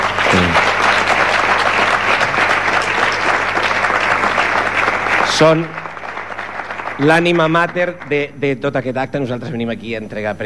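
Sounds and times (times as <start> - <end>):
audience applause: 0.0 - 8.9
speech: 0.3 - 0.6, 5.4 - 5.8, 7.0 - 10.4.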